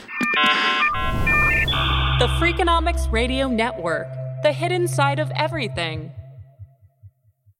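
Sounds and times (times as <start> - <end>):
car alarm going off outside: 0.3 - 2.6
speech: 2.2 - 6.2.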